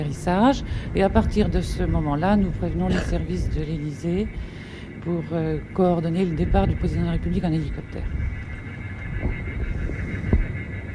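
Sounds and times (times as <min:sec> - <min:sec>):
speech: 0:00.0 - 0:08.4
played bird distress calls scaring birds: 0:02.6 - 0:10.9.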